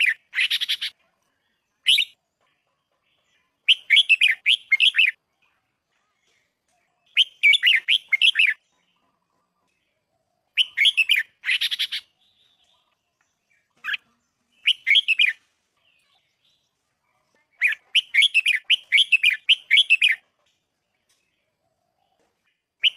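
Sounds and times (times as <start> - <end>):
red-whiskered bulbul chirpy warbled song: 0.0 - 22.9.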